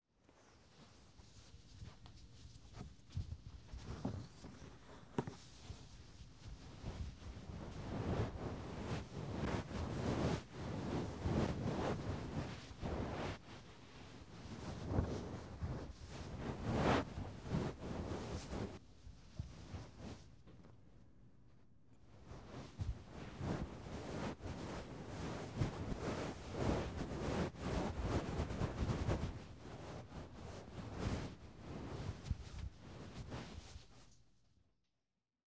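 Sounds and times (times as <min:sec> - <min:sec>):
rustling while burrowing into a futon: 0:00.7 - 0:20.8, 0:22.3 - 0:34.0.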